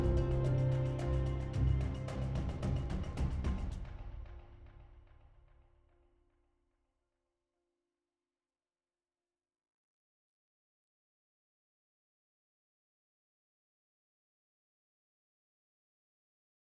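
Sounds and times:
music loop: 0.0 - 3.5.

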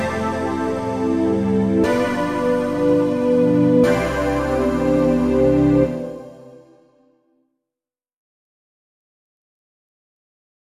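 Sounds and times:
old menu music: 0.0 - 6.7.

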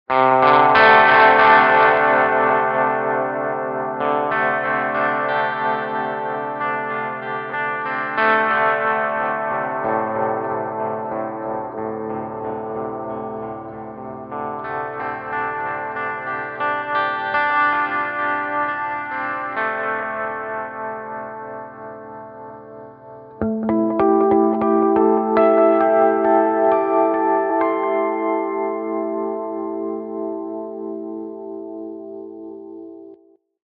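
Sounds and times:
steel guitar in G: 0.1 - 33.3.

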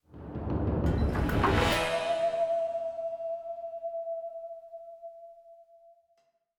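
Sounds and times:
mystic forest action music: 0.2 - 3.7.

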